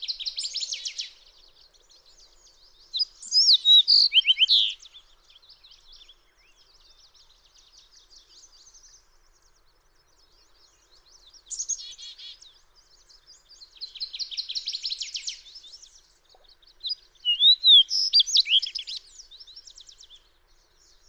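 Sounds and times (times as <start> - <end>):
fox sparrow song: 0.0 - 1.2, 2.9 - 6.9, 10.7 - 12.5, 13.5 - 16.0, 16.8 - 20.2.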